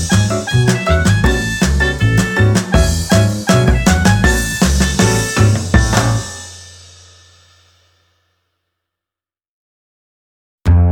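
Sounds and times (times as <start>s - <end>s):
instrumental children's song: 0.0s - 6.9s.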